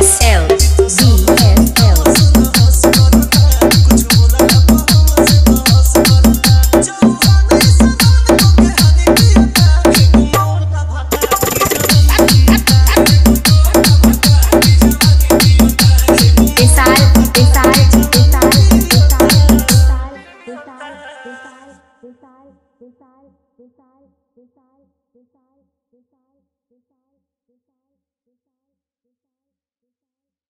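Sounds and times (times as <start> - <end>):
remix music: 0.0 - 20.4.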